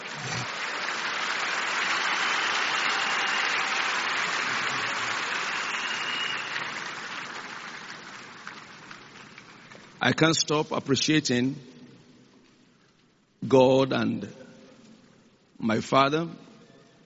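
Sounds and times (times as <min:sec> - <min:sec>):
audience applause: 0:00.0 - 0:10.0
speech: 0:10.0 - 0:11.7, 0:13.5 - 0:14.4, 0:15.6 - 0:16.5.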